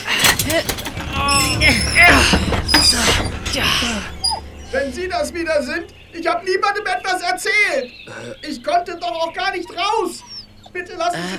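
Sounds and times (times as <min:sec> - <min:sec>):
wooden shed door hinges creaking as it is pulled open: 0:00.0 - 0:07.4
speech: 0:00.5 - 0:11.3.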